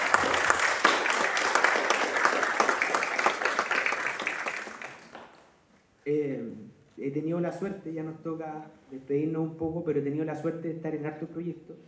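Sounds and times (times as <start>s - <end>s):
audience applause for a family: 0.0s - 5.4s
speech: 7.1s - 11.8s.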